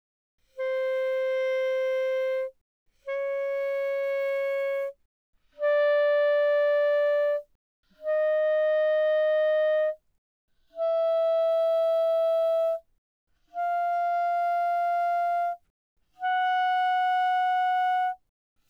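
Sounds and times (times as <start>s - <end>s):
E-flat clarinet notes played mezzo forte from C5 to B5: 0.5s - 2.5s, 3.1s - 5.0s, 5.6s - 10.0s, 10.8s - 12.8s, 13.5s - 15.6s, 16.2s - 18.2s.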